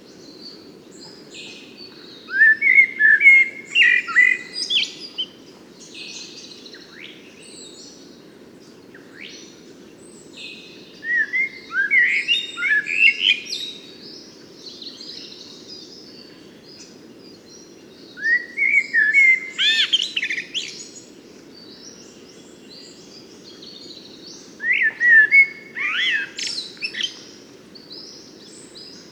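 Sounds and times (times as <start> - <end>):
Eurasian blackbird singing: 2.0 - 5.3, 11.0 - 13.8, 18.2 - 21.0, 22.8 - 27.4.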